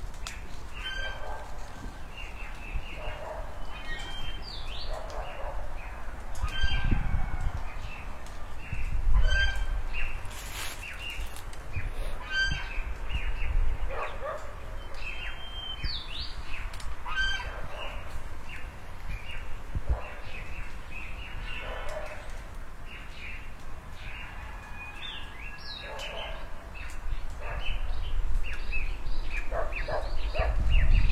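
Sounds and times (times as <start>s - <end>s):
birds chirping beside a pond in front of a house: 0.3s - 7.0s, 7.6s - 31.1s
geese honking: 17.0s - 17.6s.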